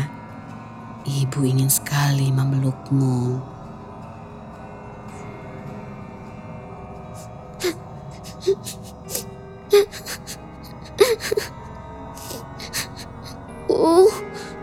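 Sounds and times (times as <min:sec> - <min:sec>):
speech: 0:01.0 - 0:03.6
child crying: 0:07.6 - 0:11.5, 0:12.2 - 0:14.6.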